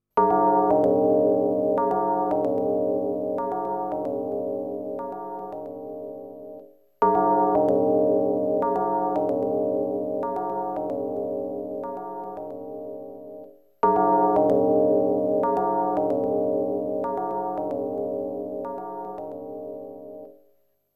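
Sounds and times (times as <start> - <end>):
bell: 0.2 - 20.4.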